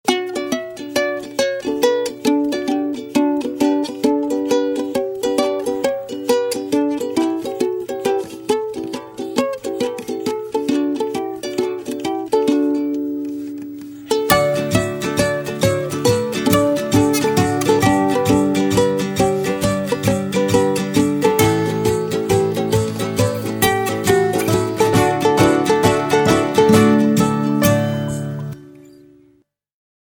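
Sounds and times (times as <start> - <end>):
ukulele: 0.0 - 29.4.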